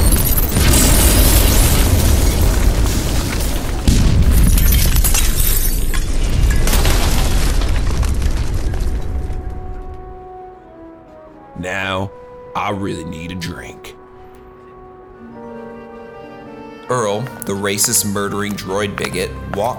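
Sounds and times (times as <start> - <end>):
thermal detonator explosion: 0.0 - 10.3
debris-like crashing: 0.0 - 10.4
speech: 12.7 - 13.9, 16.9 - 19.7.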